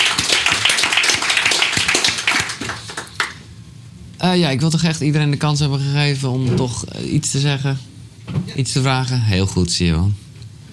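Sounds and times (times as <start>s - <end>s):
audience applause: 0.0s - 3.5s
speech: 4.2s - 7.9s, 8.6s - 10.3s.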